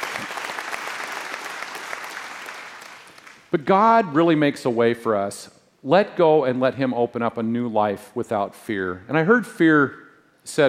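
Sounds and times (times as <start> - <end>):
audience applause: 0.0 - 3.4
speech: 3.5 - 10.6.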